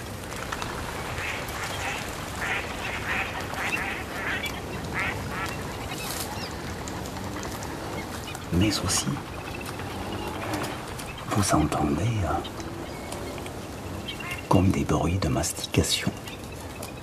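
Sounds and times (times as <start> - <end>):
mallard ducks quacking: 1.0 - 14.8
speech: 8.6 - 9.4, 11.4 - 12.6, 14.5 - 16.2.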